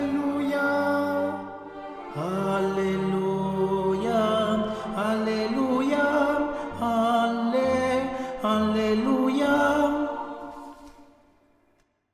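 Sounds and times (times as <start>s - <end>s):
tenor singing alleluia: 0.0s - 11.3s.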